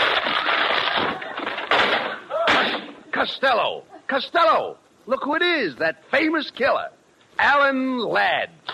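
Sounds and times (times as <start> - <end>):
banging impacts: 0.0 - 3.0
someone crashing through a door: 0.0 - 3.0
speech: 3.2 - 8.6.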